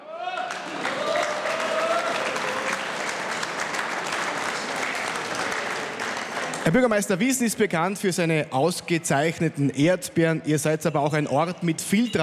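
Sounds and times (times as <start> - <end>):
audience applause: 0.0 - 6.9
speech: 6.7 - 12.2.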